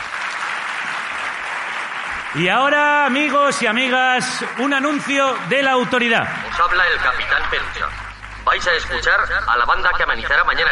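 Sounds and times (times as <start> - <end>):
audience applause: 0.0 - 10.6
speech: 2.3 - 10.6.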